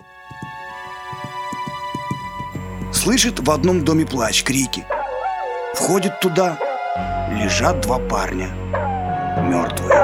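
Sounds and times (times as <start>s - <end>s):
horse hooves clip-clopping: 0.0s - 7.2s
speech: 2.9s - 5.0s, 5.8s - 8.8s, 9.4s - 10.0s.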